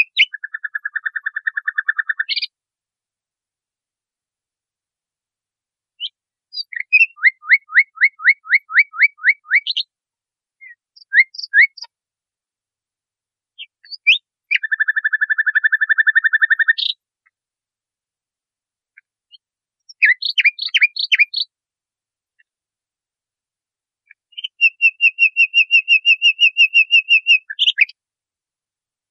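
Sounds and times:
nightingale song: 0.0s - 2.6s, 6.0s - 10.0s, 10.6s - 12.0s, 13.5s - 17.4s, 18.9s - 21.6s, 24.0s - 28.0s.

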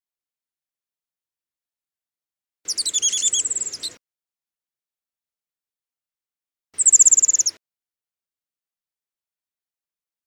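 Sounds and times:
warbler alarm call: 2.7s - 4.0s, 6.8s - 7.5s.

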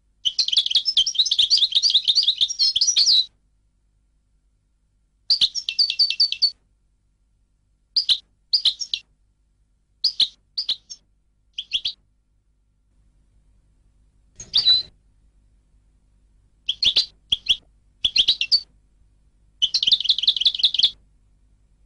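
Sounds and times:
European goldfinch song: 0.2s - 3.3s, 5.3s - 6.6s, 8.0s - 9.0s, 10.0s - 11.0s, 11.6s - 12.0s, 14.4s - 14.9s, 16.6s - 18.7s, 19.6s - 21.0s.

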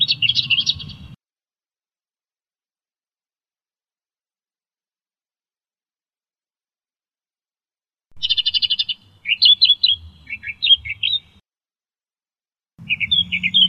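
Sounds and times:
Australian reed warbler song: 0.0s - 1.2s, 8.2s - 11.4s, 12.8s - 13.6s.

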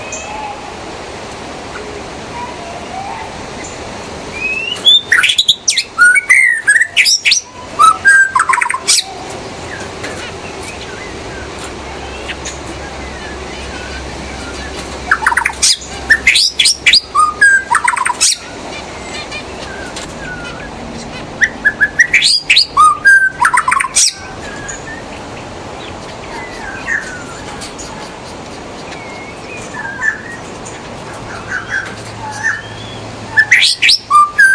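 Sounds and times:
White-rumped shama song: 2.4s - 25.2s, 25.8s - 34.5s.

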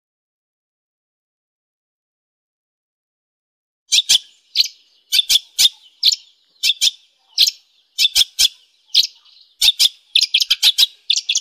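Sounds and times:
long-tailed shrike calls: 3.9s - 11.3s.

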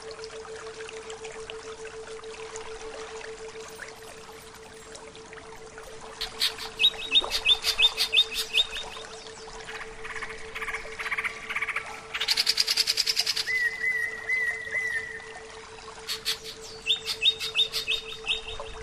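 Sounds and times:
greater green leafbird song: 6.2s - 15.4s, 16.0s - 18.8s.

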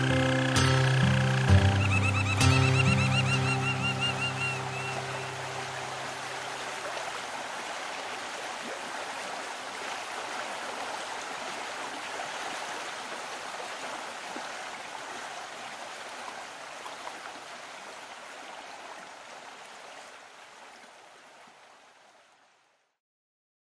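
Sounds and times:
canary singing: 0.0s - 5.8s.

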